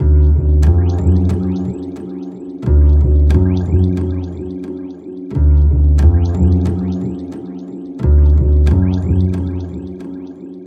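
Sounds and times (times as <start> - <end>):
remixed acoustic bass: 0.0 - 1.9, 2.6 - 4.6, 5.4 - 7.4, 8.0 - 10.0.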